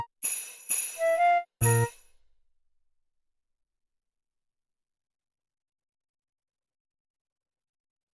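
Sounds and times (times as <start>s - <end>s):
jazz arrangement of a Christmas song: 1.0s - 1.9s.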